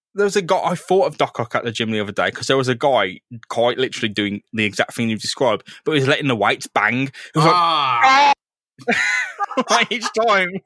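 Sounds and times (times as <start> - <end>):
speech: 0.2 - 10.6
person screaming: 7.4 - 8.4
laughter: 8.8 - 10.6.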